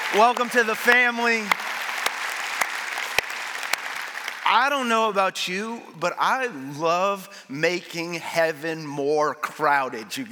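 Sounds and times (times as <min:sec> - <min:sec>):
church congregation applauding newly baptized people during a Sunday service: 0:00.0 - 0:05.5
speech: 0:00.1 - 0:01.6, 0:04.5 - 0:10.3.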